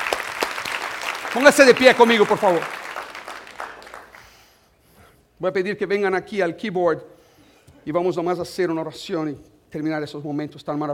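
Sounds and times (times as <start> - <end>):
audience applause: 0.0 - 4.3
speech: 1.3 - 2.8, 5.4 - 7.2, 7.8 - 10.9.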